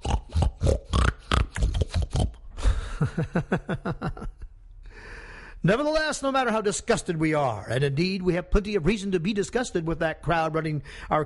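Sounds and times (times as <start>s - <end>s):
pigs grunting and oinking at a trough: 0.0s - 2.4s
speech: 3.2s - 3.9s, 5.7s - 11.2s.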